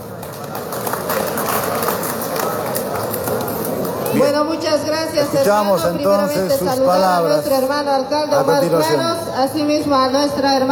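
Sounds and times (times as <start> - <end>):
audience applause: 0.0 - 4.2
speech: 4.1 - 10.7.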